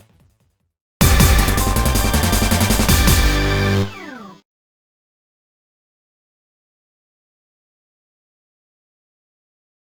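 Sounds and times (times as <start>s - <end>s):
summon music: 1.0s - 4.4s.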